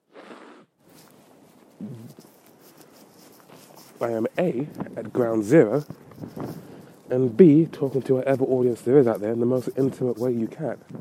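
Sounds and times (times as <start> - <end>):
person blowing nose: 0.0 - 1.1, 1.8 - 2.4
speech: 1.8 - 2.3, 4.0 - 6.5, 7.1 - 10.9.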